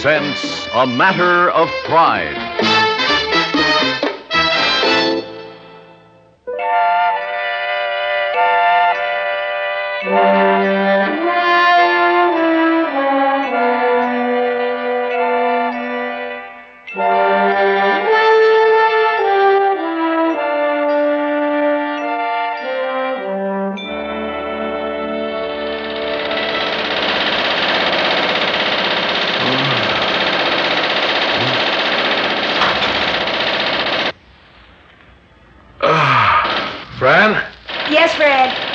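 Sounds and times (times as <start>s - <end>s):
speech: 0.0s - 2.9s
sustained musical tones: 0.0s - 4.0s, 4.9s - 26.8s
riveting gun hammering: 25.6s - 34.2s, 36.5s - 38.7s.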